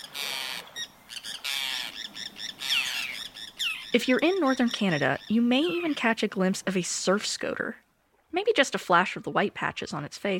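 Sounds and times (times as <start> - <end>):
Forster's tern calling: 0.0 - 6.4
speech: 3.9 - 10.3.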